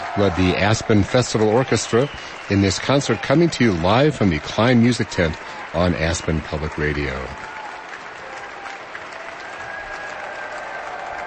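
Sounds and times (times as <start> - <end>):
audience applauding after an orchestra concert in a music tent: 0.0 - 11.2
speech: 0.2 - 7.5.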